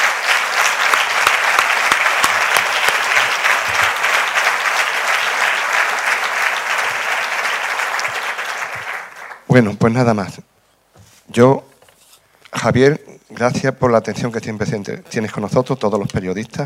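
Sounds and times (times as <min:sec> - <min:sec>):
audience applause: 0:00.0 - 0:09.5
speech: 0:09.6 - 0:10.5, 0:11.4 - 0:11.7, 0:12.6 - 0:16.6.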